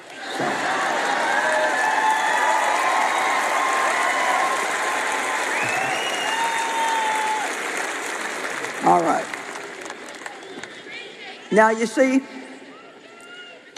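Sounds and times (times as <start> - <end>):
audience applause: 0.0 - 10.8
speech: 11.6 - 12.4.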